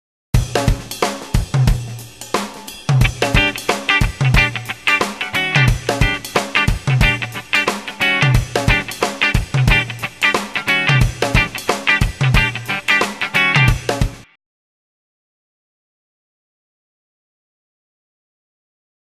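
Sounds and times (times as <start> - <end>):
rhythm guitar: 0.4 - 14.3.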